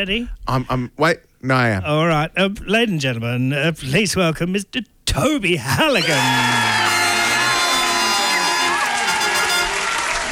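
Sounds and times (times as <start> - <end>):
speech: 0.0 - 6.7
studio audience cheering and clapping: 6.0 - 10.3.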